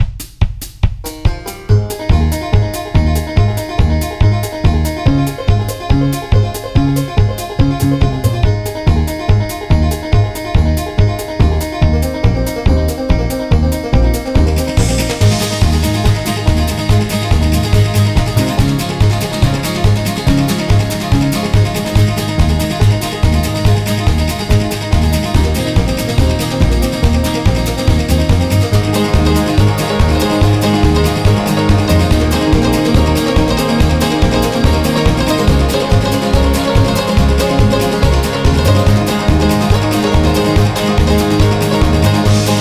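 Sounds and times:
banjo: 1.0 - 42.5.

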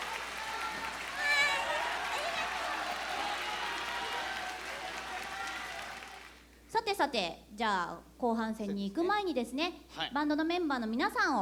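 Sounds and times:
audience applause: 0.0 - 6.4
speech: 7.0 - 11.4.

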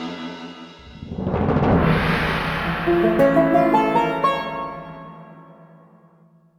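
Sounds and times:
sword battle music: 0.8 - 5.8.

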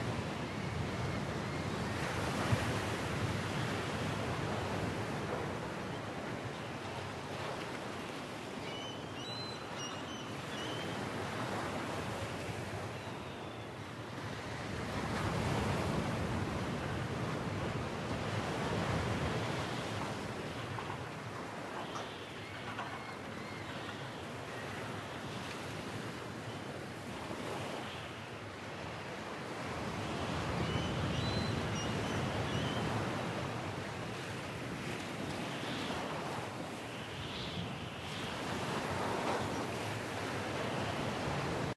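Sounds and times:
beach ambience: 0.0 - 41.7.

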